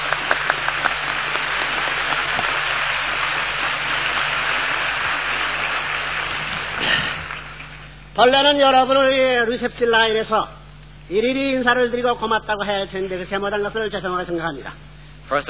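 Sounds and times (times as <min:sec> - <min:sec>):
audience applause: 0:00.0 - 0:07.9
speech: 0:08.2 - 0:15.4.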